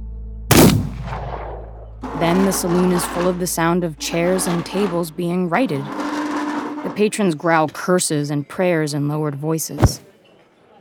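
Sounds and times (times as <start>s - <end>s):
steady low hum: 0.0s - 7.1s
gunshot: 0.5s - 2.0s
speech: 2.2s - 6.0s, 6.9s - 10.1s.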